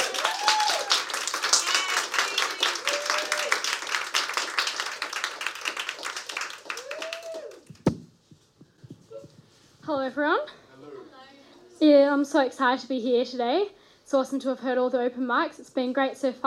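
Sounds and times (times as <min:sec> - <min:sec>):
whoops and cheers: 0:00.0 - 0:03.6, 0:06.6 - 0:07.7
people clapping: 0:00.0 - 0:08.0
speech: 0:09.9 - 0:10.6, 0:11.8 - 0:16.4.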